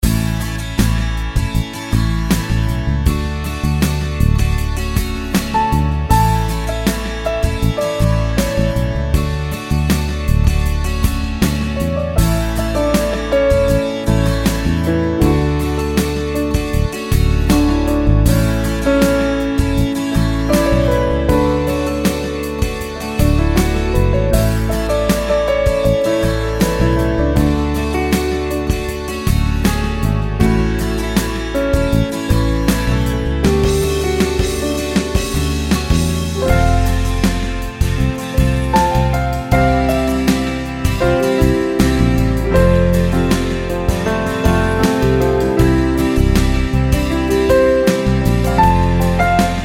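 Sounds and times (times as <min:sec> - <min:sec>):
sunny pop music: 0:00.0 - 0:49.6.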